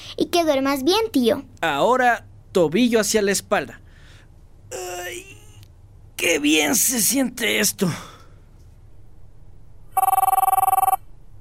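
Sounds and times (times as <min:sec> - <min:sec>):
speech: 0:00.2 - 0:03.8, 0:06.2 - 0:08.1
telephone ringing: 0:10.0 - 0:11.1.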